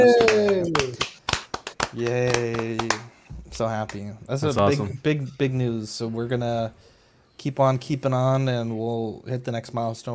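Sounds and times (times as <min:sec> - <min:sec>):
speech: 0:00.0 - 0:00.4, 0:02.0 - 0:02.9, 0:03.6 - 0:10.1
small group applauding: 0:00.0 - 0:03.2.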